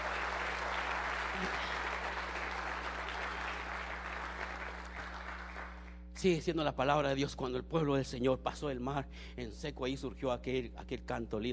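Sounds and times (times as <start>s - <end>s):
audience applauding loudly: 0.0s - 6.0s
speech: 6.2s - 11.5s.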